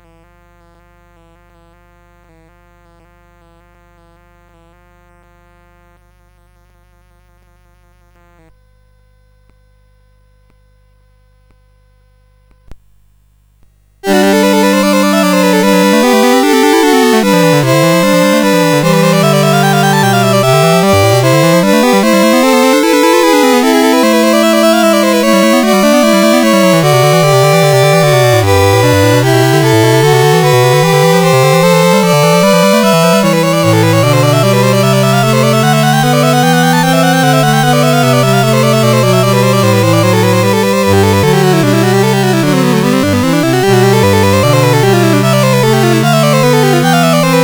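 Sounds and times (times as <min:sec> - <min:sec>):
prelude: 0:14.0 - 0:47.4.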